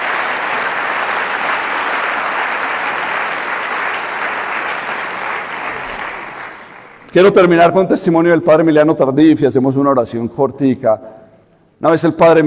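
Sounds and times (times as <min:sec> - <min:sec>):
audience applause: 0:00.0 - 0:07.1
speech: 0:07.1 - 0:11.2, 0:11.8 - 0:12.4.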